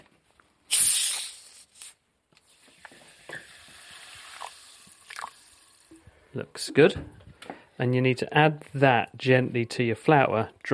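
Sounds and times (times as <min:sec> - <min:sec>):
oil sizzling in a pan: 0:02.5 - 0:06.0
speech: 0:06.3 - 0:07.2, 0:07.8 - 0:10.7.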